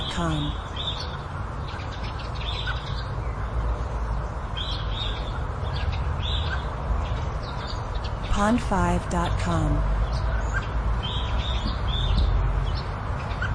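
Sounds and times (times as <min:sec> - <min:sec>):
birds chirping: 0:00.0 - 0:13.5
speech: 0:00.2 - 0:00.7, 0:08.4 - 0:09.9.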